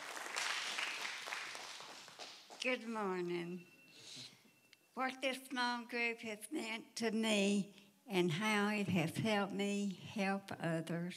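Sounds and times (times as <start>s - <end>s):
audience applause: 0.0s - 2.5s
speech: 2.6s - 4.3s, 5.0s - 11.1s.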